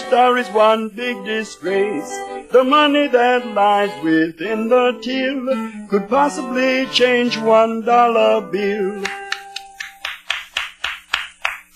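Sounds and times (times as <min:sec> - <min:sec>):
speech: 0:00.1 - 0:09.2
applause: 0:09.0 - 0:11.7.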